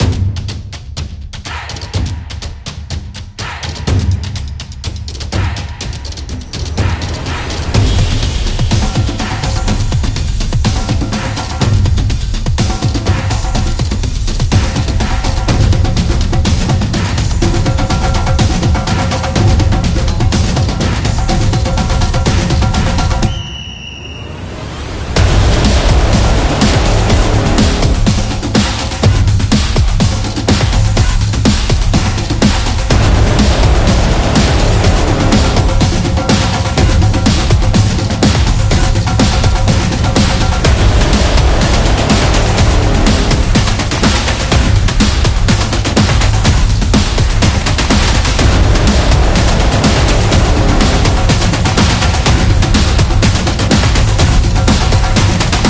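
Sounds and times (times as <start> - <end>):
football drums: 0.0 - 55.6.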